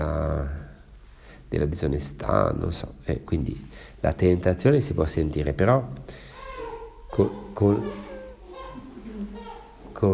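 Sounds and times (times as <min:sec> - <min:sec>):
speech: 0:01.5 - 0:06.3, 0:07.2 - 0:08.1
baby babbling during a meditation: 0:06.3 - 0:09.9.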